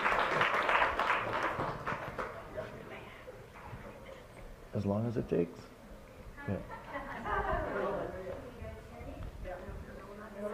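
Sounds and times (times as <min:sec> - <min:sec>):
audience applause welcoming a speaker: 0:00.0 - 0:02.8
speech: 0:04.8 - 0:05.7, 0:06.5 - 0:06.8
laughter: 0:06.4 - 0:08.4.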